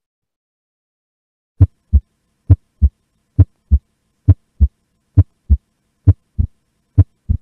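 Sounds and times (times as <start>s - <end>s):
heart sounds with split S2 during inspiration: 1.6s - 7.3s.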